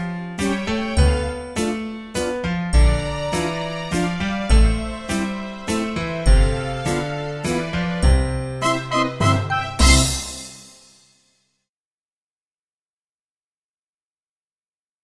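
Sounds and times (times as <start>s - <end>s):
waltz music: 0.0s - 11.0s.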